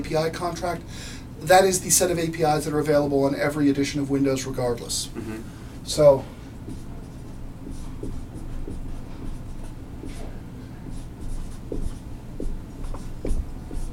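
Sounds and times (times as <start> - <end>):
speech: 0.0 - 6.8
faint low hum: 0.0 - 13.9
pen handwriting scratching across a surface: 6.7 - 13.9.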